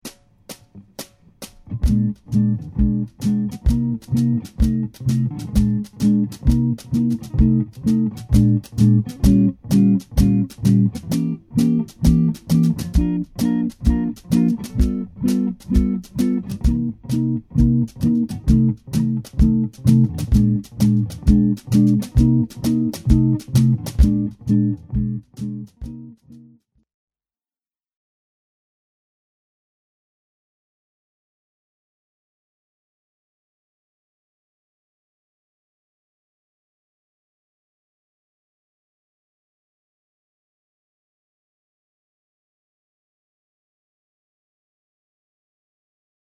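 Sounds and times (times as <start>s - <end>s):
blues music: 0.4s - 26.5s.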